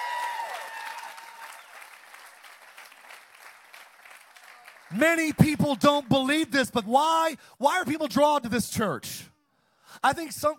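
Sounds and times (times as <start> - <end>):
audience hand clapping: 0.0 - 6.7
speech: 4.9 - 9.3, 10.0 - 10.5.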